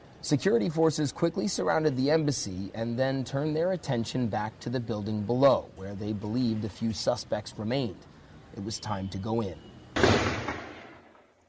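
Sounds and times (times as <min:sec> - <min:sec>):
speech: 0:00.2 - 0:10.3
gunfire during an embassy firefight: 0:10.0 - 0:11.0.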